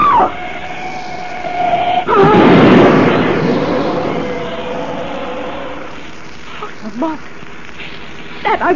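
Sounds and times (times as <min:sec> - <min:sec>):
steady wailing tone: 0:00.0 - 0:06.3
car smashed to bits in crash: 0:01.6 - 0:06.0
speech: 0:07.0 - 0:07.3, 0:08.4 - 0:08.7.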